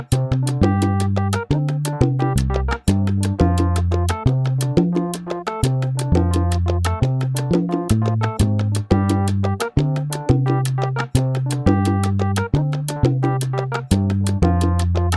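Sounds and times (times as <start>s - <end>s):
salsa backing track in two-three clave: 0.0s - 15.1s.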